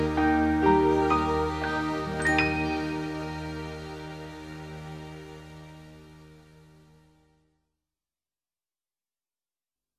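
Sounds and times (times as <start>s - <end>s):
classical piano lullaby: 0.0s - 4.4s.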